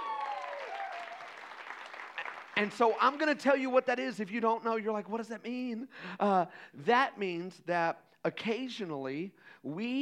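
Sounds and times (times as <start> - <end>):
audience applause: 0.0 - 3.0
speech: 2.6 - 9.9.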